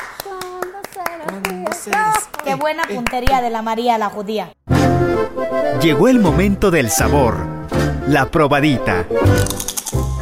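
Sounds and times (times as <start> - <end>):
audience applause: 0.0 - 3.2
speech: 1.1 - 9.7.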